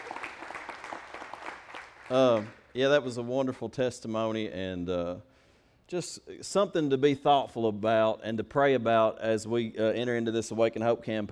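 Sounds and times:
audience hand clapping: 0:00.0 - 0:02.8
speech: 0:02.1 - 0:05.3, 0:05.9 - 0:11.3.

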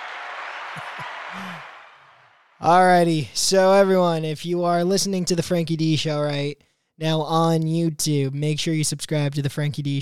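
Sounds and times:
applause sound effect: 0:00.0 - 0:02.7
speech: 0:00.8 - 0:01.7, 0:02.6 - 0:10.0.

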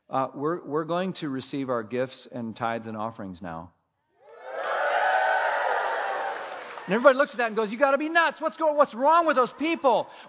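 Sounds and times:
speech: 0:00.1 - 0:03.8, 0:06.9 - 0:10.2
audience cheering and whooping: 0:04.2 - 0:07.1.

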